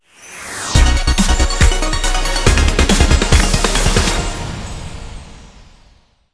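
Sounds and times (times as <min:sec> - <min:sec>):
free spin outro music: 0:00.7 - 0:05.0.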